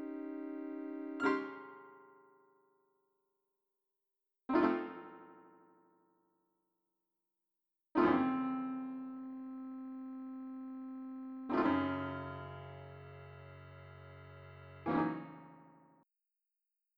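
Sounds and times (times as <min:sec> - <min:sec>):
piano: 0:00.0 - 0:02.3, 0:04.6 - 0:05.9, 0:08.0 - 0:15.8.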